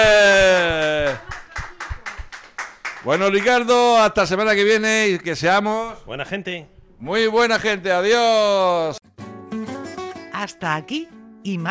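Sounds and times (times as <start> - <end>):
hand claps in a residence for people with mental illness: 0.0 - 3.7
speech: 3.0 - 9.1, 10.4 - 11.7.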